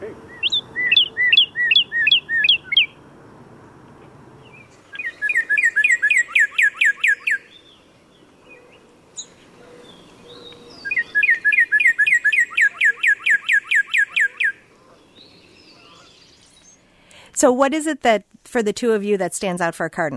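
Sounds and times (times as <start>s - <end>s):
northern cardinal song: 0.0s - 3.0s, 4.4s - 16.9s
speech: 17.4s - 20.1s.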